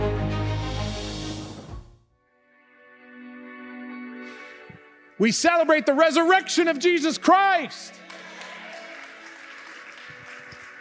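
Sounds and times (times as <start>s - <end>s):
speech: 5.2s - 8.0s
audience clapping: 6.7s - 10.7s.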